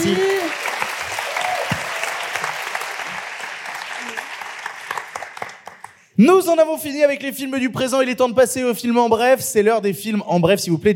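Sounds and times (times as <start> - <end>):
audience applause: 0.0 - 6.0
speech: 6.2 - 10.9.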